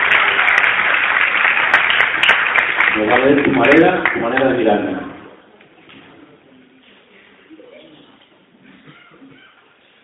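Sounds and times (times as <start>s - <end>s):
loud audience applause: 0.0s - 4.5s
speech: 3.0s - 5.1s.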